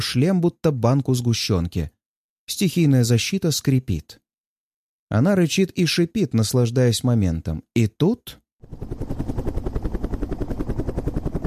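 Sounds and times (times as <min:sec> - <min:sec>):
speech: 0:00.0 - 0:04.2, 0:05.1 - 0:09.1
helicopter hovering above a rooftop, rotor blades pounding: 0:08.6 - 0:11.4.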